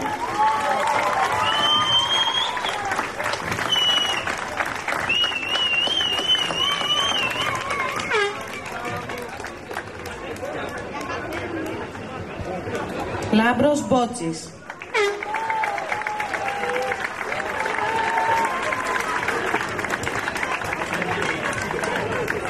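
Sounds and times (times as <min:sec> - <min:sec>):
audience applause and cheering: 0:00.0 - 0:12.8, 0:14.6 - 0:22.4
speech: 0:13.5 - 0:14.6.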